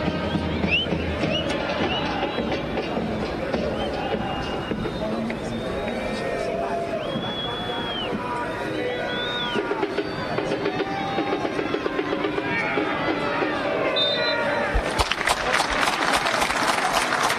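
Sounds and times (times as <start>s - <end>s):
scattered whistles: 0.0s - 11.5s, 13.9s - 15.1s
large stadium crowd applauding: 0.0s - 13.1s, 14.0s - 17.3s.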